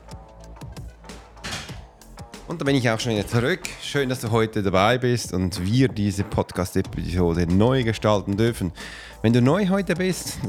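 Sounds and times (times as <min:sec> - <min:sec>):
door closing: 0:01.2 - 0:04.0
speech: 0:02.5 - 0:10.4.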